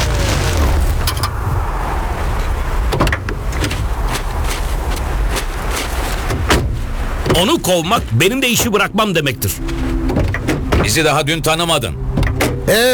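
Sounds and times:
running vehicle low rumble: 0:00.0 - 0:12.9
car door locks clunking shut: 0:02.9 - 0:04.2, 0:06.3 - 0:12.9
speech: 0:07.4 - 0:10.3, 0:10.9 - 0:12.1, 0:12.7 - 0:12.9.

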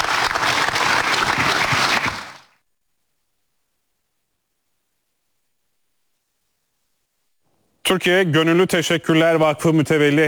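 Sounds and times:
strong applause: 0:00.0 - 0:02.5
speech: 0:07.9 - 0:10.2.

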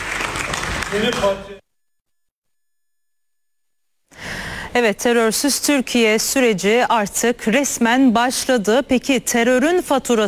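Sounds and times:
applause from parliament members: 0:00.0 - 0:01.6
speech: 0:00.9 - 0:01.6, 0:04.7 - 0:10.2.

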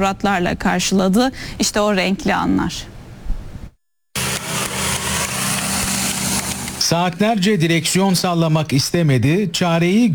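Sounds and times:
speech: 0:00.0 - 0:02.9, 0:06.9 - 0:10.1
engine of a self-built light aircraft used as an air taxi: 0:04.2 - 0:06.9.

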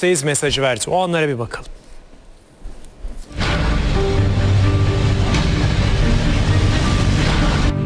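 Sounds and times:
speech: 0:00.0 - 0:01.8
nuclear-capable intercontinental ballistic missile fired from a submarine at sea: 0:03.4 - 0:07.7.

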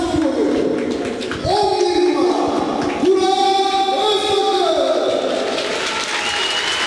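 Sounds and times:
football fans clapping: 0:00.1 - 0:06.8.

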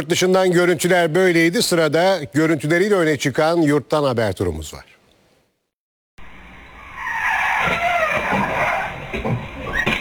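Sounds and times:
speech: 0:00.0 - 0:04.9
car tyres squealing while skidding out of control on a road in Erzurum: 0:06.9 - 0:09.9.

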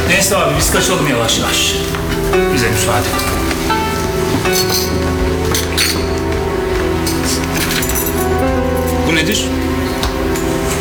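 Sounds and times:
steady low musical hum: 0:00.0 - 0:10.7
speech: 0:00.2 - 0:03.8, 0:04.4 - 0:06.2, 0:09.1 - 0:10.0
hotel keys jangling: 0:07.1 - 0:09.0.

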